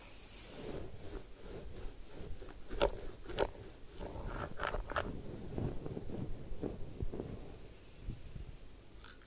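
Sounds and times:
hair washing soft low rubbing and shuffling: 0.0 - 8.6
ear cleaning sharp bright crackling scratches: 0.4 - 7.7.

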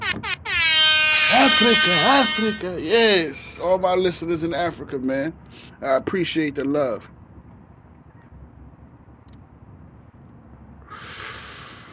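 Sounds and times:
speech: 1.3 - 7.2
low steady rumble: 2.0 - 11.9
person inhaling Blue Dream cannabis smoke: 10.8 - 11.9.

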